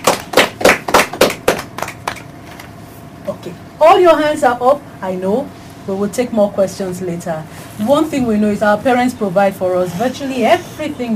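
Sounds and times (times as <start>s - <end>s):
group clapping: 0.0s - 2.7s
speech: 3.4s - 11.1s.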